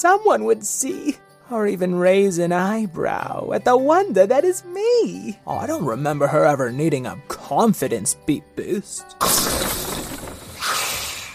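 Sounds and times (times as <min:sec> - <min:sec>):
speech: 0:00.0 - 0:09.7
something big crashing through a school: 0:09.2 - 0:10.9.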